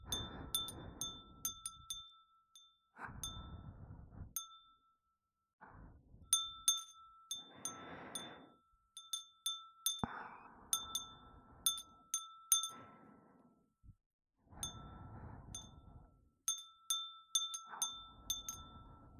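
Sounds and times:
breathing: 0:00.0 - 0:01.6, 0:03.0 - 0:04.4, 0:05.6 - 0:06.4, 0:07.3 - 0:08.8, 0:10.0 - 0:16.3, 0:17.6 - 0:19.1
glass wind chime: 0:00.0 - 0:03.7, 0:04.4 - 0:05.0, 0:06.3 - 0:10.1, 0:10.7 - 0:13.0, 0:14.6 - 0:19.1.

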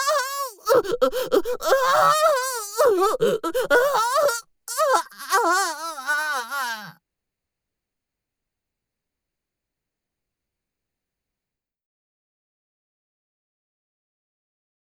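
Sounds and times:
person moaning: 0:00.2 - 0:06.9.

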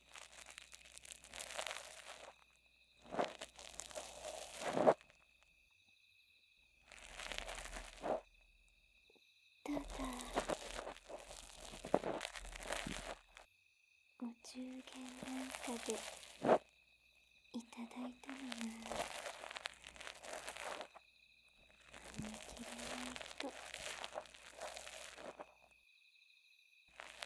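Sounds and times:
ear cleaning on right ear: 0:00.0 - 0:02.3, 0:03.0 - 0:05.1, 0:06.9 - 0:08.2, 0:09.8 - 0:13.4, 0:14.8 - 0:16.7, 0:18.1 - 0:21.0, 0:21.7 - 0:25.6, 0:27.0 - 0:27.2.

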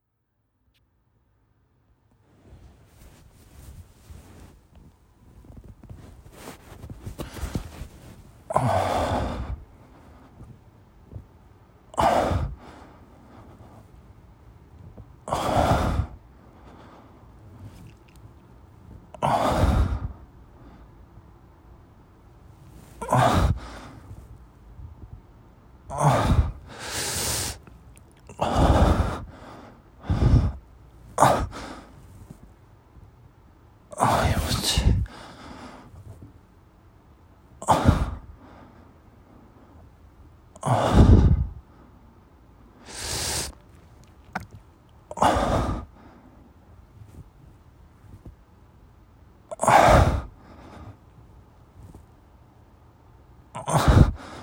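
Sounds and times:
breathing during masturbation: 0:05.3 - 0:11.2, 0:12.0 - 0:14.1, 0:14.8 - 0:21.0, 0:22.6 - 0:24.4, 0:26.1 - 0:32.5, 0:34.1 - 0:36.3, 0:37.7 - 0:39.9, 0:40.7 - 0:42.0, 0:42.8 - 0:48.3, 0:49.8 - 0:51.2, 0:53.8 - 0:54.4.

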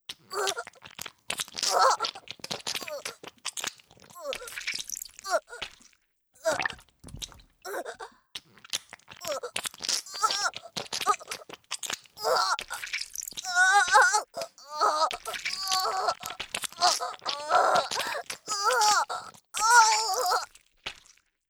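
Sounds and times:
person groaning: 0:00.3 - 0:00.6, 0:01.7 - 0:02.2, 0:02.8 - 0:03.2, 0:04.2 - 0:04.5, 0:05.3 - 0:05.6, 0:07.7 - 0:08.1, 0:09.2 - 0:09.5, 0:10.1 - 0:11.4, 0:12.2 - 0:12.8, 0:13.5 - 0:20.4.

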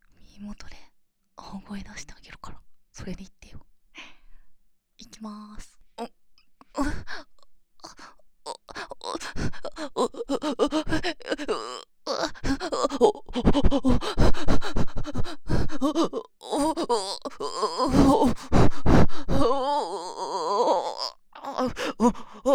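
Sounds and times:
person moaning: 0:08.5 - 0:22.5.

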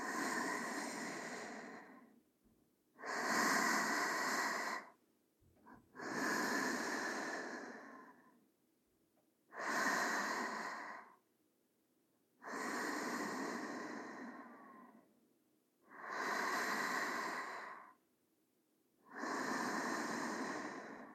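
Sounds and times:
sleeping breathing: 0:00.0 - 0:02.2, 0:03.0 - 0:05.0, 0:05.7 - 0:08.4, 0:09.5 - 0:11.2, 0:12.4 - 0:15.1, 0:15.8 - 0:18.0, 0:19.0 - 0:21.1.

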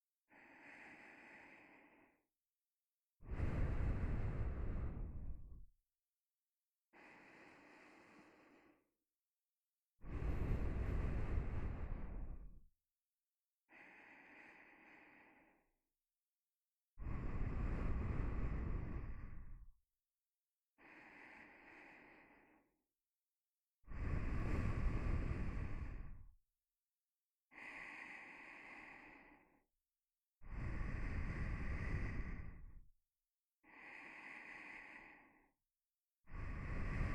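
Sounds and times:
nose breathing while lying beside: 0:00.3 - 0:02.2, 0:03.2 - 0:05.5, 0:07.0 - 0:08.9, 0:10.1 - 0:12.5, 0:13.7 - 0:15.6, 0:17.0 - 0:19.6, 0:20.8 - 0:22.7, 0:23.9 - 0:26.2, 0:27.6 - 0:29.6, 0:30.4 - 0:32.8, 0:33.6 - 0:35.5, 0:36.3 - 0:37.1.

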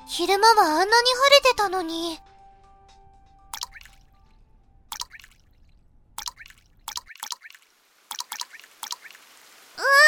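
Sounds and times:
speech: 0:00.1 - 0:02.3
rain dripping: 0:03.6 - 0:04.0, 0:04.9 - 0:05.6, 0:06.2 - 0:09.8
rain starting to fall: 0:07.6 - 0:10.0.

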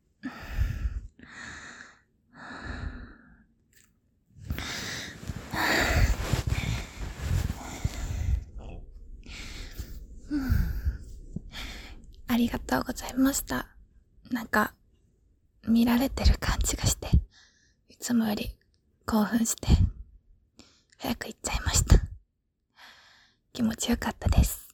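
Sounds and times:
person breathing after exertion: 0:00.2 - 0:03.5, 0:04.4 - 0:12.3, 0:17.3 - 0:17.8, 0:22.8 - 0:23.4
speech: 0:12.4 - 0:13.7, 0:14.3 - 0:14.8, 0:15.6 - 0:17.0, 0:18.1 - 0:19.9, 0:21.0 - 0:22.0, 0:23.6 - 0:24.6.

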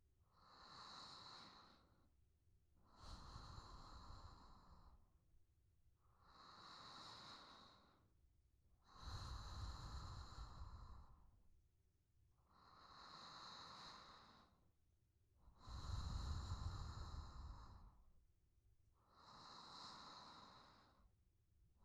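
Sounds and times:
sleeping breath: 0:02.9 - 0:05.0, 0:06.3 - 0:08.0, 0:08.9 - 0:11.3, 0:12.5 - 0:14.6, 0:15.6 - 0:18.0, 0:19.0 - 0:21.0.

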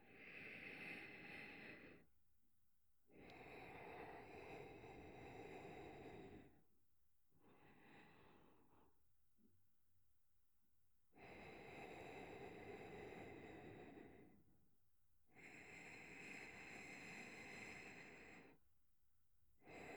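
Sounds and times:
person breathing in sleep, left channel, ASMR: 0:00.0 - 0:02.1, 0:03.1 - 0:06.6, 0:07.4 - 0:09.0, 0:11.2 - 0:14.5, 0:15.4 - 0:18.6.

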